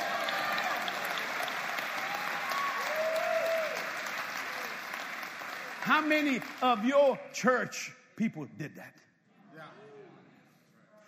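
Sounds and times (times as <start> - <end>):
audience hand clapping: 0.0 - 7.2
speech: 5.8 - 9.1.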